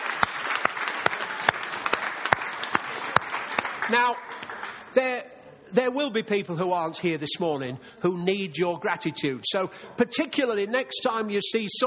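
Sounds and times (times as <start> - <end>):
audience applause: 0.0 - 4.9
speech: 3.9 - 4.4, 5.0 - 11.8.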